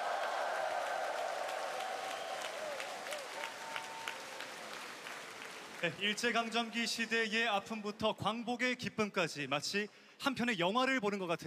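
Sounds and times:
audience applause for children's choir: 0:00.0 - 0:06.6
speech: 0:05.8 - 0:11.4.

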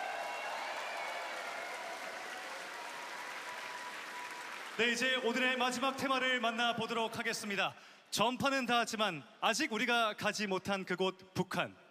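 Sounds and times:
audience applause: 0:00.0 - 0:05.9
speech: 0:04.8 - 0:11.8.

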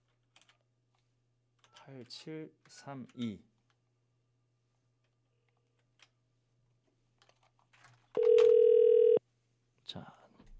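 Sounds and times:
speech: 0:01.8 - 0:03.5, 0:10.0 - 0:10.2
outgoing telephone call ringing tone: 0:08.2 - 0:09.2.

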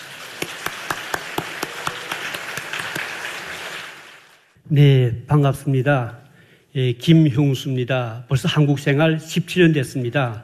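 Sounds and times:
sharp evenly spaced claps: 0:00.0 - 0:04.4
audience applause welcoming speaker: 0:00.0 - 0:04.6
speech: 0:04.7 - 0:06.2, 0:06.8 - 0:10.4.

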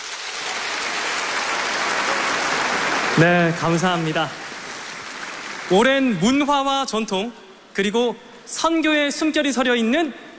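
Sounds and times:
audience applause: 0:00.0 - 0:06.2
speech: 0:03.2 - 0:04.4, 0:05.7 - 0:10.2.

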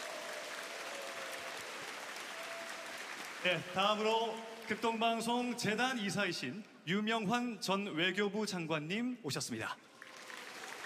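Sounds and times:
audience applause: 0:00.0 - 0:05.2, 0:09.9 - 0:10.8
speech: 0:03.4 - 0:09.9.

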